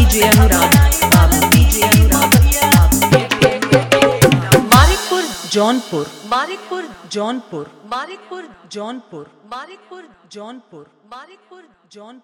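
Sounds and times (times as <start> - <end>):
Bhojpuri music: 0.0 - 7.1.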